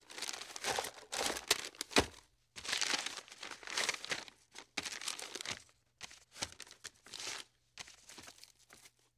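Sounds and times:
parchment paper handled by hand: 0.0s - 9.1s.

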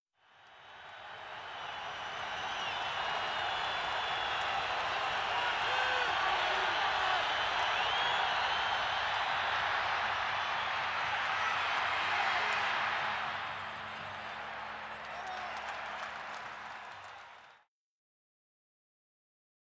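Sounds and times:
excited football crowd in a sports arena: 0.2s - 17.6s.

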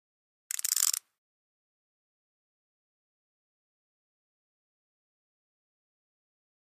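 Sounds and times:
flash gear slow multi: 0.5s - 1.0s.

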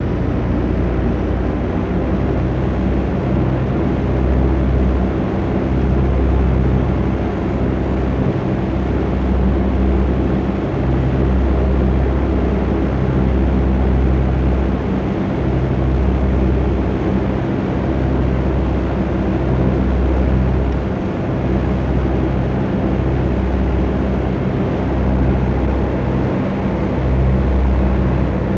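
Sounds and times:
B-17 Flying Fortress interior engine drone: 0.0s - 28.5s.

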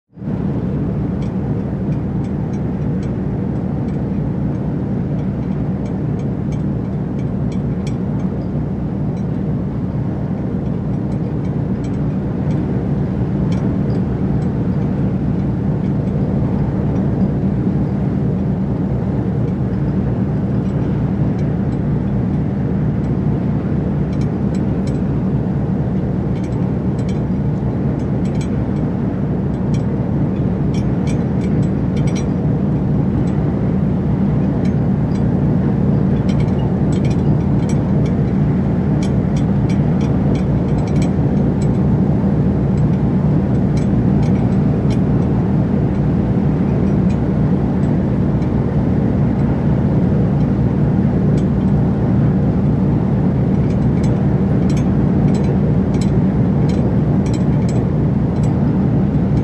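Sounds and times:
ocean liner engine rumble from deck: 0.1s - 59.4s
ocean liner flagpole rattling in wind: 0.1s - 59.4s.

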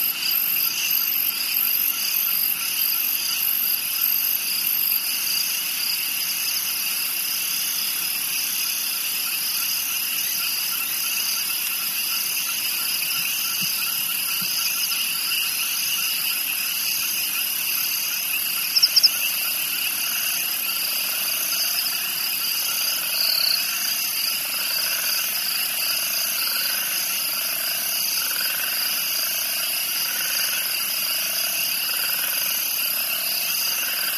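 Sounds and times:
crickets chirping: 0.0s - 34.1s
spring peepers calling: 18.0s - 19.6s.

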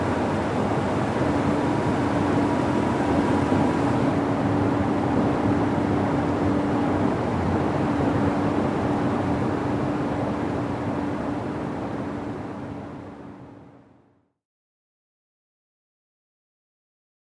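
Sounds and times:
SUV engine accelerating to 100 mph: 0.0s - 11.8s.

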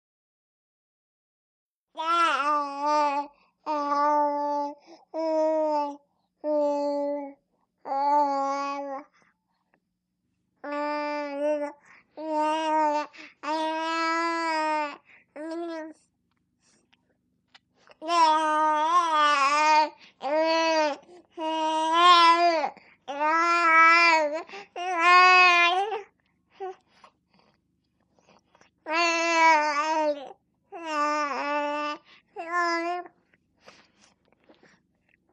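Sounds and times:
four month old baby girl babbling: 2.0s - 9.1s, 10.6s - 16.0s, 18.0s - 26.8s, 28.8s - 33.1s.

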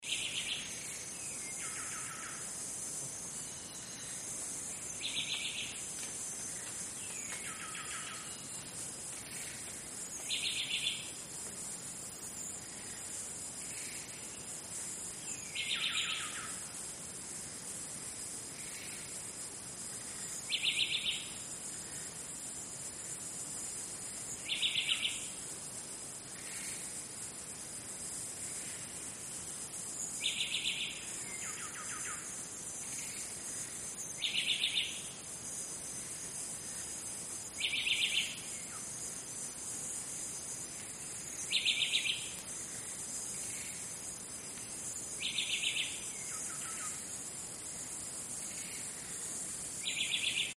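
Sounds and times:
Amazon jungle insects: 0.0s - 50.5s.

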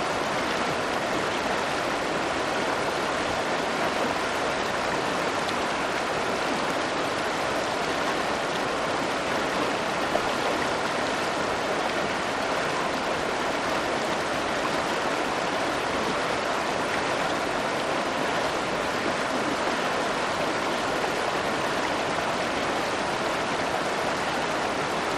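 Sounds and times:
medium river flowing: 0.0s - 25.1s.

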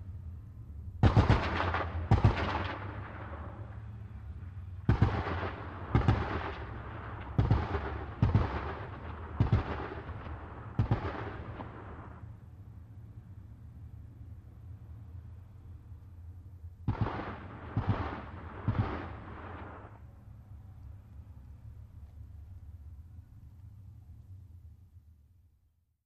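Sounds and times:
.50 caliber machine gun firing on a battlefield: 1.0s - 3.4s, 4.9s - 6.7s, 7.4s - 10.2s, 10.8s - 11.8s, 16.9s - 19.8s.

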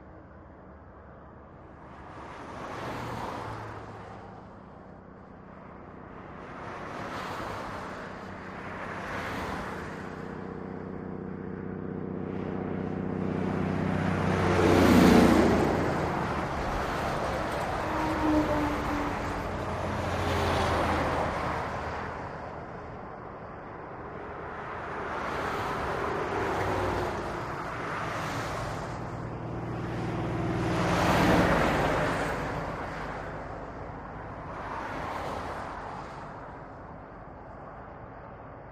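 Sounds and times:
traffic: 0.0s - 38.7s.

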